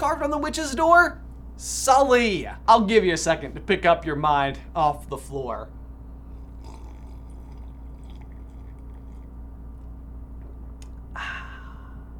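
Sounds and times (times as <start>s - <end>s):
speech: 0.0s - 5.8s
low hum: 0.0s - 12.1s
big slurping sip of a drink: 6.3s - 9.9s.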